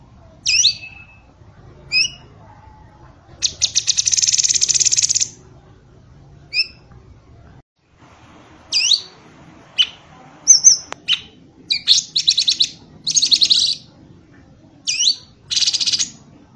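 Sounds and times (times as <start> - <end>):
bird song of sharp high chirps, slurred whistles and buzzy rattles: 0.4 - 1.3, 3.4 - 5.4, 6.5 - 6.9, 8.7 - 9.2, 9.8 - 13.9, 14.8 - 16.2.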